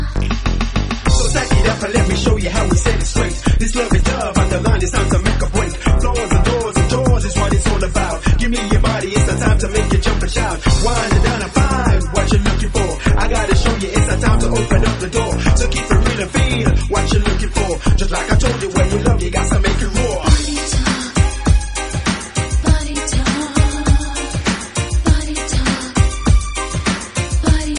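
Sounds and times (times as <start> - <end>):
ragga beats mix: 0.2 - 27.7.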